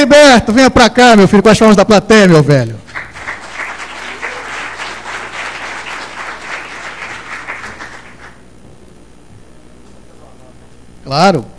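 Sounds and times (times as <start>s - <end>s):
speech: 0.0s - 2.8s, 11.1s - 11.5s
audience applause: 2.9s - 8.4s.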